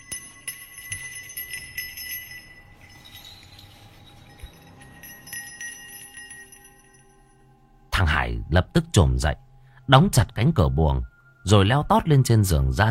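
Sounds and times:
small bell jingling at a gate: 0.0s - 7.5s
speech: 8.3s - 12.8s.

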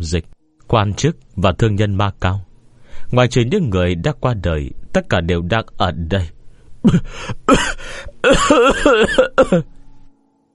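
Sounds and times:
speech: 0.0s - 9.8s
man on a ship coughing violently: 6.8s - 9.7s.

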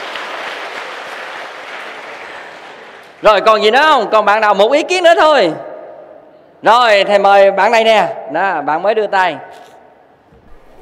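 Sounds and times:
audience applause at a Buddhist monk's lecture: 0.0s - 3.2s
speech: 3.2s - 5.7s, 6.6s - 9.7s.

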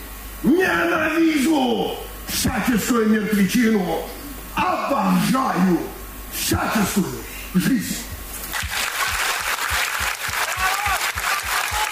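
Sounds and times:
speech: 0.4s - 4.2s, 4.9s - 8.1s
long stormy applause in a concert hall: 8.5s - 11.9s.

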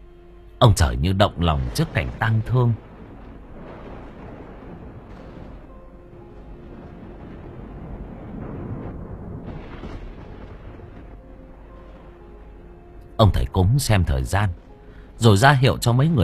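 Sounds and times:
speech: 0.6s - 2.9s, 13.2s - 14.6s, 15.2s - 16.2s
rumbling thunder: 0.8s - 16.2s.

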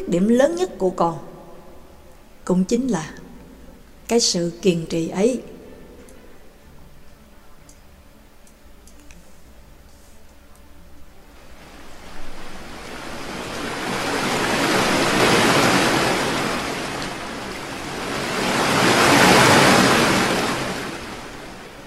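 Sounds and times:
speech: 0.0s - 1.3s, 2.5s - 3.2s, 4.1s - 5.5s
ocean waves crashing: 11.4s - 21.8s.

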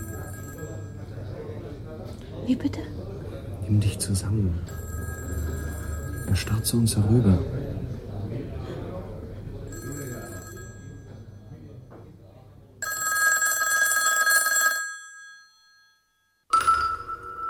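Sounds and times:
telephone bell ringing: 0.0s - 1.2s, 4.7s - 7.0s, 9.7s - 11.6s, 12.8s - 17.4s
speech: 2.5s - 3.0s, 3.7s - 4.8s, 6.3s - 7.6s.

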